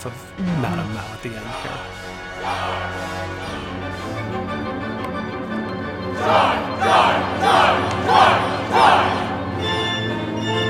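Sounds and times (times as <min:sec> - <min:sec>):
speech: 0:00.0 - 0:04.6, 0:06.2 - 0:09.2
steady orchestral background: 0:00.0 - 0:10.6
opera chorus shouting in unison: 0:01.5 - 0:04.2, 0:06.1 - 0:10.4.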